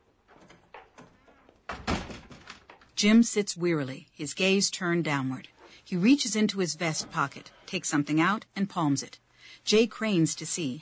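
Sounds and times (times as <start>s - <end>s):
door being shut: 0.4s - 2.8s
speech: 3.0s - 10.8s.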